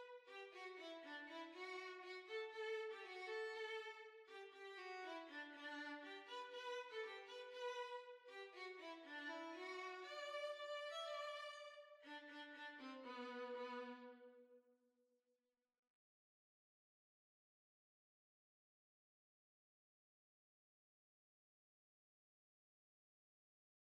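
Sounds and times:
violin playing a schottische: 0:00.0 - 0:14.2.

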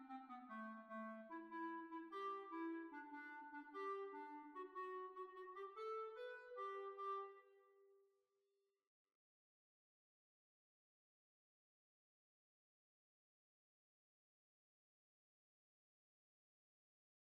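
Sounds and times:
hornpipe tune in B flat: 0:00.0 - 0:07.5.

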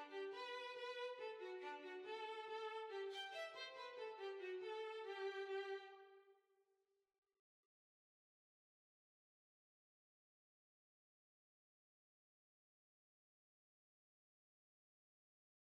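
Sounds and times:
violin playing a hornpipe: 0:00.0 - 0:06.1.

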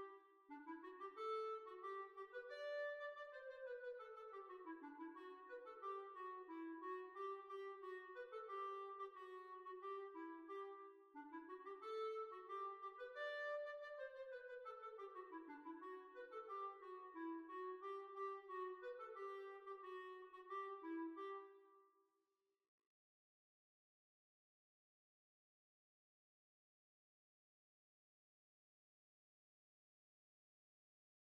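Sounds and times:
hornpipe tune: 0:00.0 - 0:21.6.

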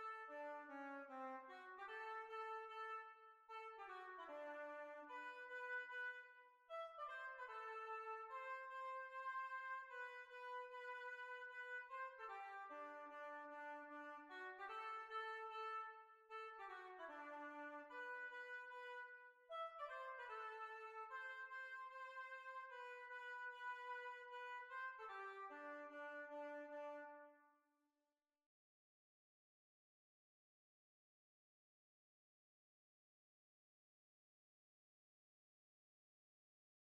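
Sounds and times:
hornpipe folk tune: 0:00.0 - 0:27.4.

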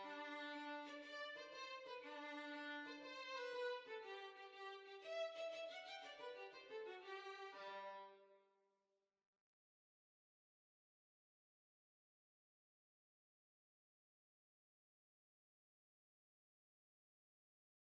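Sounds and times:
violin: 0:00.0 - 0:08.4.

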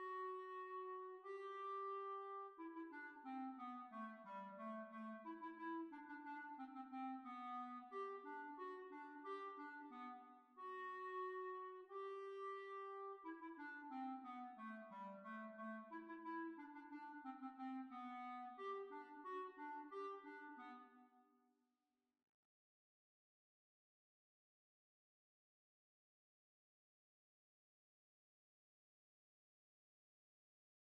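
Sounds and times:
hornpipe tune: 0:00.2 - 0:20.9.

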